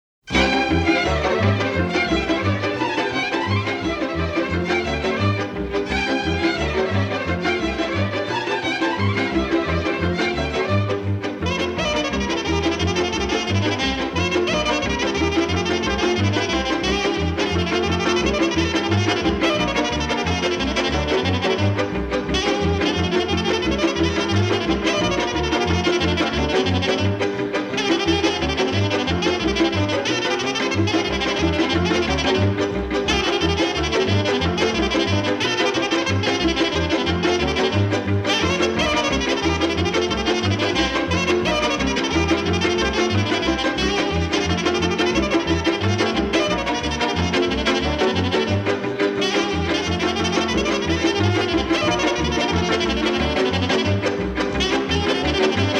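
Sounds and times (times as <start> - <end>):
taragot playing jolly dance: 0.2 - 55.7.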